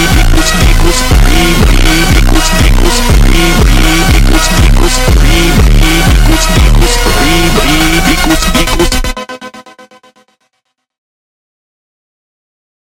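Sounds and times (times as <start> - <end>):
slowed funk music: 0.0 - 9.5.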